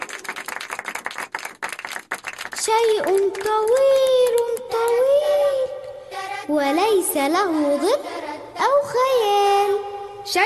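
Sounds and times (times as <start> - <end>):
audience clapping after a correct answer on a children's radio quiz: 0.0 - 5.0
speech: 2.6 - 5.1, 6.5 - 10.4.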